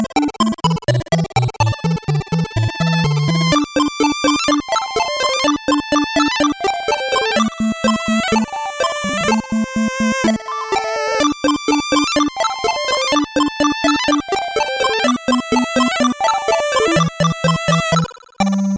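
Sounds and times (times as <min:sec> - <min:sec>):
fast 8-bit background music: 0:00.1 - 0:18.7.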